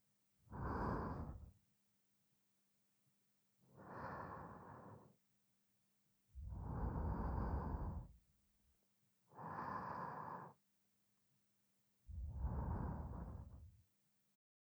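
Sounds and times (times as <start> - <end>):
person breathing in sleep: 0.5 - 1.5, 3.8 - 5.2, 6.4 - 8.2, 9.4 - 10.6, 12.1 - 13.6.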